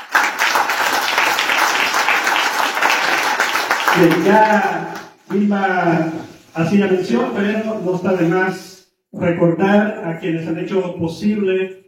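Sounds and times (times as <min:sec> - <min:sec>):
audience applause: 0:00.0 - 0:05.1
speech: 0:04.0 - 0:11.8.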